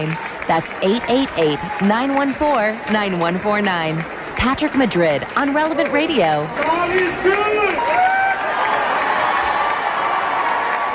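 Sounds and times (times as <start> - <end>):
speech: 0.0 - 7.9
crowd cheering: 0.0 - 10.9.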